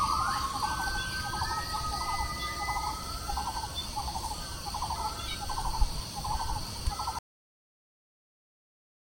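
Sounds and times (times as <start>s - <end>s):
South Vietnamese forest ambience: 0.0s - 7.2s.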